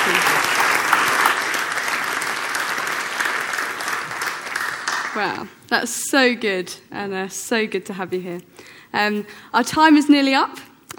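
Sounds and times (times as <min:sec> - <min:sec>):
audience applause: 0:00.0 - 0:05.4
speech: 0:05.2 - 0:10.9.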